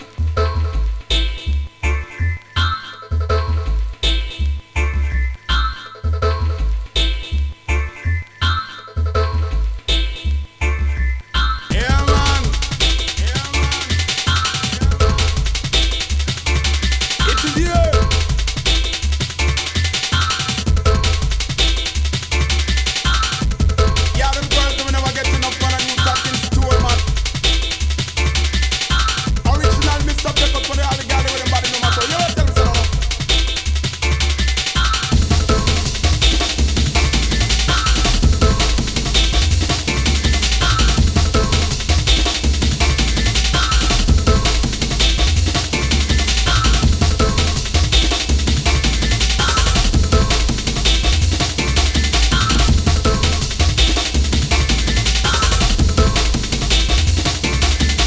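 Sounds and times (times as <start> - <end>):
jungle reggae music: 0.0 - 58.0.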